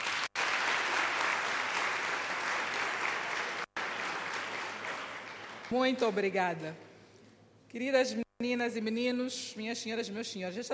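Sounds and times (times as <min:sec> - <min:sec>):
audience applause: 0:00.0 - 0:05.9
speech: 0:05.7 - 0:06.8, 0:07.7 - 0:10.7.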